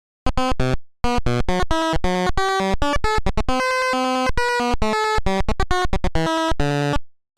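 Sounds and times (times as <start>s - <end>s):
ringtone: 1.2s - 7.0s.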